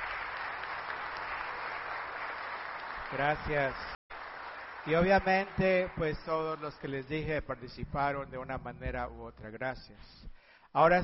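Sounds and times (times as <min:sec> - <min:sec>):
audience applause: 0:00.0 - 0:07.2
speech: 0:03.1 - 0:04.0, 0:04.8 - 0:11.0.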